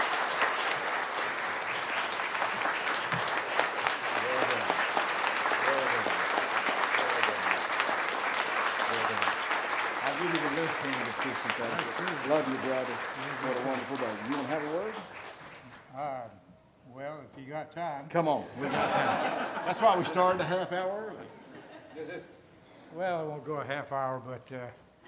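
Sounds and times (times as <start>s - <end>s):
audience applause: 0.0s - 15.9s
speech: 17.6s - 21.3s, 23.0s - 24.8s
laughter: 18.5s - 22.4s.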